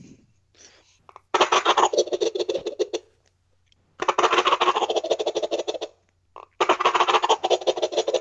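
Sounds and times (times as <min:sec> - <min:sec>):
shaken turkey gobble call: 0:01.3 - 0:03.2, 0:04.0 - 0:08.1.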